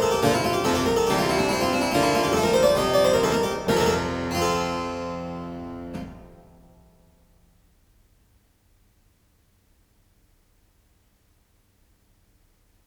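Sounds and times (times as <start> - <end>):
harpsichord piece: 0.0 - 6.8.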